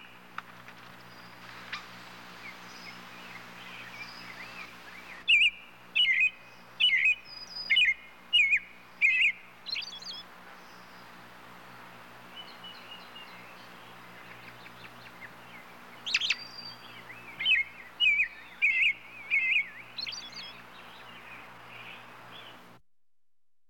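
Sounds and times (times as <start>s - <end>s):
robin chirping: 2.7s - 11.0s, 12.4s - 22.6s.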